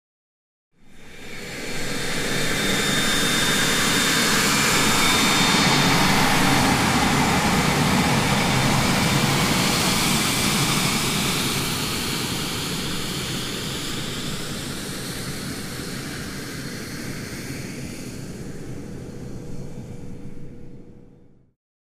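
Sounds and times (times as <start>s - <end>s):
jet fighter passing by: 2.3s - 14.3s.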